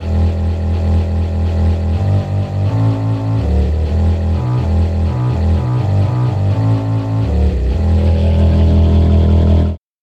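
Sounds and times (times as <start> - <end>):
fiddle bass line: 0.0 - 9.8.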